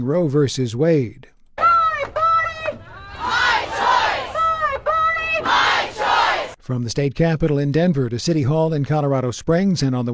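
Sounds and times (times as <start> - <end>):
speech: 0.0 - 1.3, 6.7 - 10.1
protest crowd chanting: 1.6 - 6.6.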